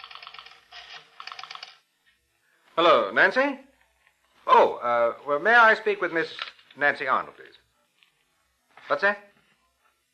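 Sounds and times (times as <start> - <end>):
telephone dialing: 0.0 - 1.8
speech: 2.8 - 3.7, 4.5 - 7.6, 8.9 - 9.3.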